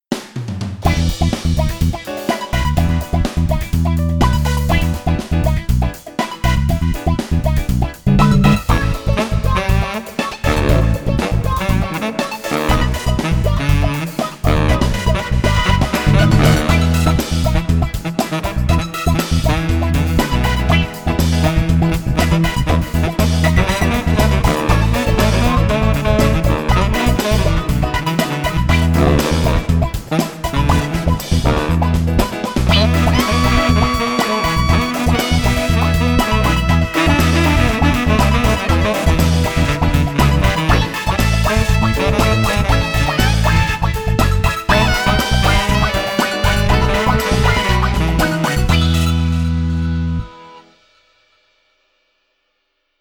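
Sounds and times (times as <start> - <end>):
funky saxophone music: 0.9 - 50.7.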